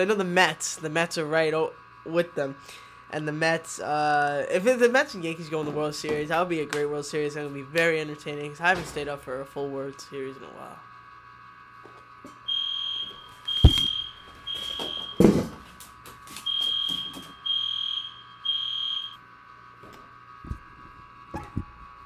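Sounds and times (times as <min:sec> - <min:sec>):
speech: 0:00.0 - 0:10.9
fire drill alarm: 0:12.4 - 0:15.6, 0:16.2 - 0:19.2.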